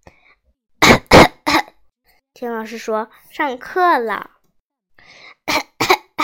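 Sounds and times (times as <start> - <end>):
harsh loud coughs: 0.8 - 1.8, 5.4 - 6.2
speech: 2.4 - 4.4.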